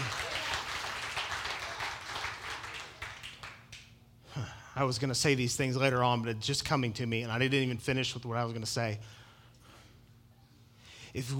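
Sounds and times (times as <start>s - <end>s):
audience clapping: 0.0s - 3.9s
speech: 4.4s - 9.2s, 11.1s - 11.3s.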